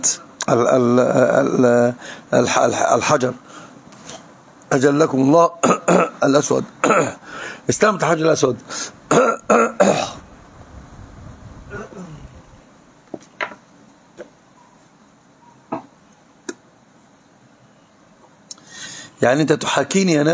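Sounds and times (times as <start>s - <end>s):
speech: 0.0s - 3.6s, 4.7s - 9.8s, 19.2s - 20.3s
harsh coughs: 5.6s - 6.2s, 6.8s - 7.2s, 9.1s - 10.2s, 11.7s - 12.2s.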